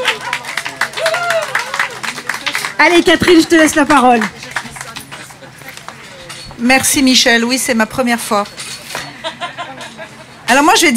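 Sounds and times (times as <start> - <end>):
audience hand claps welcoming a speaker at a talk: 0.0 - 6.1
speech: 2.8 - 4.4, 6.6 - 8.6, 10.5 - 10.9
laughter: 8.9 - 10.5.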